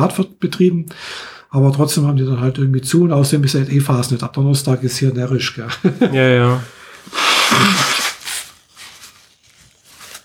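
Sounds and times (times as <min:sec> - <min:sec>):
speech: 0:00.0 - 0:08.0
laughter: 0:05.6 - 0:07.8
faint breathy rustling: 0:06.6 - 0:10.2
loud breathy sniffle: 0:06.7 - 0:08.5.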